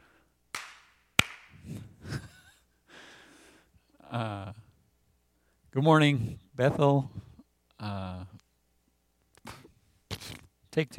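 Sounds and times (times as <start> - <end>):
hand clap marking start of take: 0.5 - 1.6
murmured vocal sounds: 4.0 - 4.7, 6.2 - 8.4
speech: 4.1 - 4.6, 5.7 - 8.3, 10.8 - 10.9.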